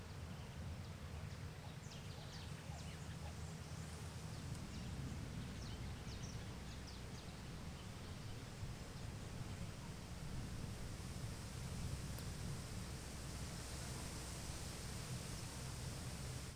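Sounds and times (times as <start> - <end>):
wind on a farm by day: 0.0 - 16.5
rustling leaves on a farm: 6.4 - 16.5.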